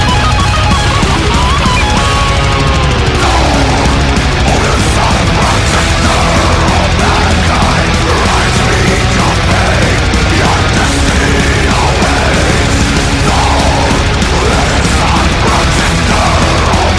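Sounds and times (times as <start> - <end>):
rapid double bass playing: 0.0 - 16.9.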